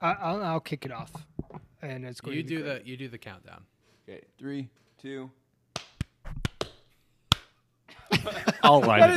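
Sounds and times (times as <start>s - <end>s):
speech: 0.0s - 5.4s, 8.2s - 9.1s
hosts clapping hands: 5.7s - 7.6s
laughter: 7.9s - 9.1s.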